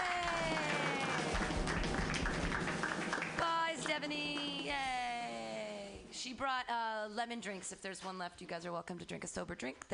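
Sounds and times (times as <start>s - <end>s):
voices whooping and cheering: 0.0s - 1.4s
group clapping: 0.0s - 5.2s
speech: 6.2s - 9.9s.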